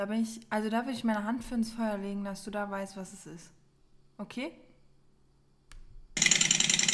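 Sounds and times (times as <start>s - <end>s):
speech: 0.0s - 3.6s, 4.2s - 4.6s
fuel-injected Harley motorcycle engine cranking and roaring: 6.2s - 6.9s.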